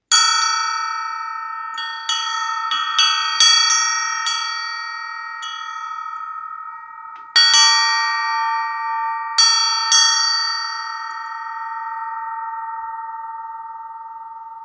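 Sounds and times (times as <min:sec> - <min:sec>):
elephant bell ringing: 0:00.1 - 0:14.6.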